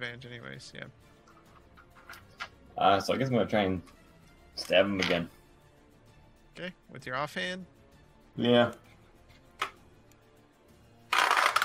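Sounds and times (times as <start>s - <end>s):
speech: 0.0s - 1.2s, 2.8s - 4.0s, 4.6s - 5.4s, 6.6s - 7.8s, 8.4s - 8.9s
dice clattering across a table during a tabletop roleplaying game: 11.1s - 11.6s.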